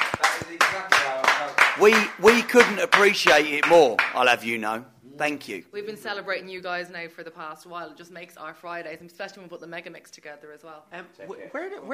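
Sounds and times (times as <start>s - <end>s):
hand clapping: 0.0s - 4.5s
wordless vocal sounds from people: 1.8s - 5.6s
speech: 1.8s - 11.9s.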